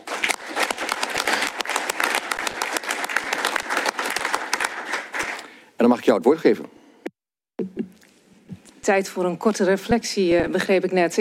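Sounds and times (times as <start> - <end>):
audience applause: 0.0 - 5.6
speech: 5.8 - 6.8, 8.9 - 11.1.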